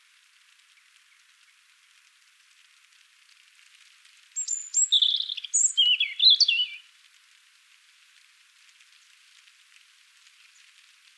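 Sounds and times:
European robin song: 4.4 - 6.8.

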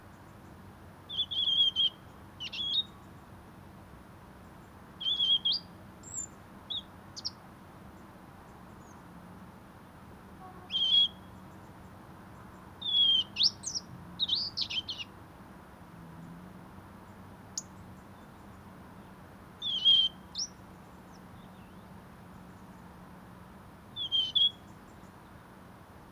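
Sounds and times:
European robin calls: 1.1 - 3.1, 5.0 - 7.4, 10.4 - 11.8, 12.4 - 15.2, 19.6 - 21.9, 24.0 - 25.2.

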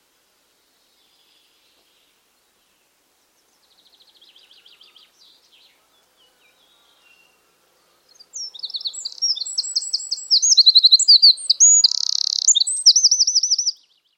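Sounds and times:
Eurasian wren song: 0.7 - 14.1.

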